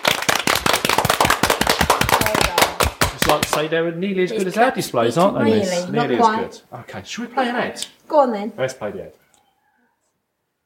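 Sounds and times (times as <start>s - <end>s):
clapping: 0.0s - 3.7s
speech: 3.3s - 9.2s.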